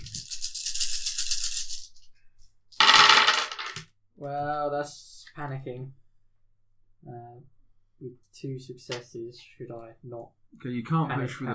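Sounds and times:
dice rattling in a cupped hand: 0:00.0 - 0:02.1, 0:02.7 - 0:03.9
speech: 0:04.2 - 0:06.0, 0:07.0 - 0:11.5.

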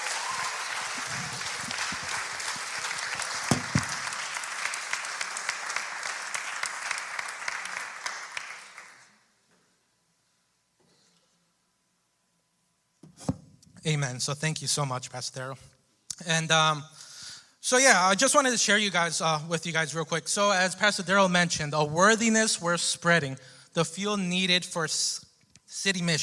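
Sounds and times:
audience applause: 0:00.0 - 0:09.1
speech: 0:13.8 - 0:17.0, 0:17.7 - 0:26.2.

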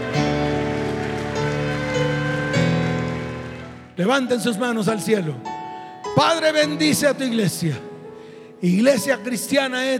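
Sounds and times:
audience clapping: 0:00.0 - 0:04.2
sustained keyboard chords: 0:00.0 - 0:09.5
speech: 0:04.0 - 0:05.5, 0:06.1 - 0:07.9, 0:08.6 - 0:09.9.

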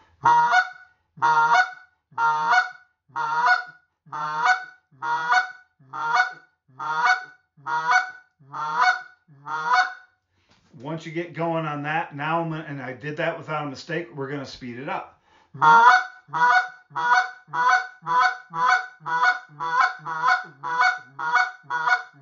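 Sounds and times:
speech: 0:00.2 - 0:00.5, 0:01.2 - 0:01.5, 0:11.1 - 0:16.5
goose call on an old man model imitating goose clucks: 0:00.2 - 0:10.0, 0:15.6 - 0:22.1.

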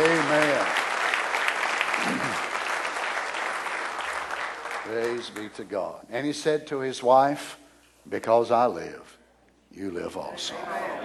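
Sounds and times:
audience clapping hands in praise: 0:00.0 - 0:05.7
speech: 0:05.2 - 0:11.0.

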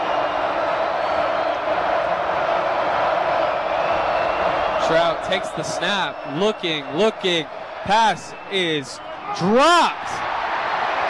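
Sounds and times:
stadium crowd jeering: 0:00.0 - 0:11.0
speech: 0:04.9 - 0:10.3.

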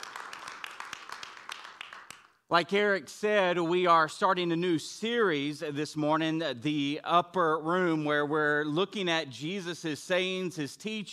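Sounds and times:
audience round of applause: 0:00.0 - 0:02.2
speech: 0:02.5 - 0:11.1.

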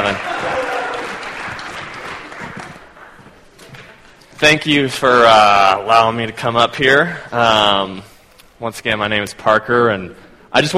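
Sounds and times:
audience applause welcoming a speaker to the stage: 0:00.0 - 0:03.4
speech: 0:04.4 - 0:10.7.

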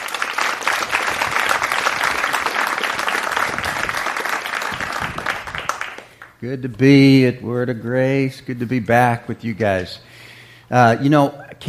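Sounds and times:
church congregation applause welcoming Pastor Dennis Episcopo: 0:00.0 - 0:06.4
speech: 0:06.4 - 0:10.1, 0:10.7 - 0:11.6.

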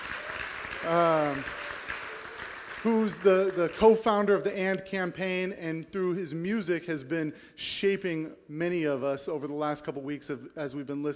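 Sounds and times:
audience applause: 0:00.0 - 0:04.3
speech: 0:00.8 - 0:01.6, 0:02.8 - 0:11.1.

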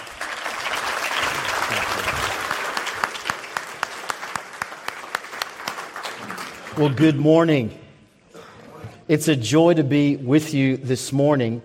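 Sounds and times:
audience applause welcoming a speaker at a church gathering: 0:00.0 - 0:07.0
speech: 0:06.8 - 0:07.8, 0:09.1 - 0:11.6.

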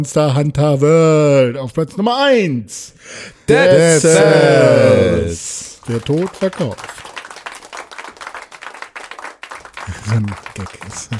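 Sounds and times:
speech: 0:00.0 - 0:07.1, 0:09.9 - 0:11.1
played-in canned applause: 0:03.7 - 0:11.1.

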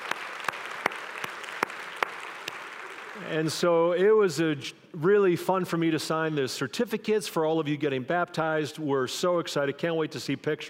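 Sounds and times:
crowd, audience cheering and applauding: 0:00.0 - 0:03.5
speech: 0:03.2 - 0:10.6.

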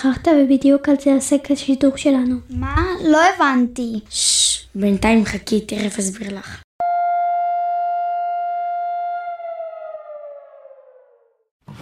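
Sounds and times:
speech: 0:00.0 - 0:06.6
memorial siren sounding: 0:06.8 - 0:11.5.

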